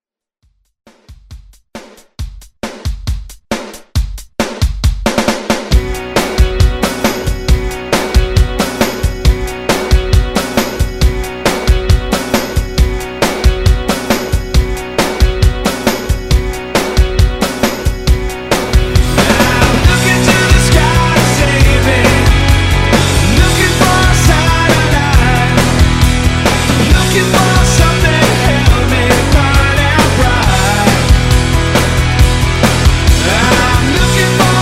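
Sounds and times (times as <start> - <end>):
90s rock drum beat: 0.6 - 34.5.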